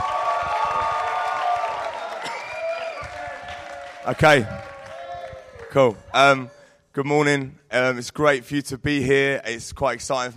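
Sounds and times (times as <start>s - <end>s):
audience applause and cheering: 0.0s - 6.6s
speech: 4.0s - 4.6s, 5.7s - 10.3s.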